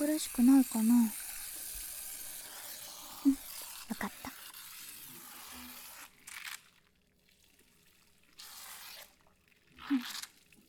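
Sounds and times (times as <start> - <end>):
shower water running: 0.0 - 6.1
speech: 0.2 - 1.2.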